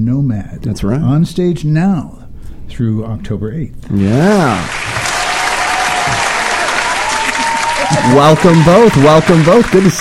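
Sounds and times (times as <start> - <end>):
speech: 0.0 - 4.9, 7.9 - 9.9
applause: 3.9 - 9.9.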